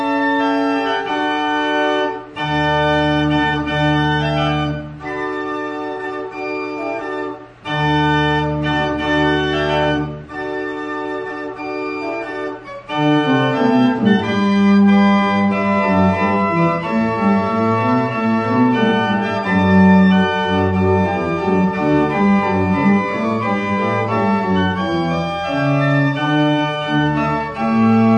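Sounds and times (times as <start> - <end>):
organ piece: 0.0 - 28.1.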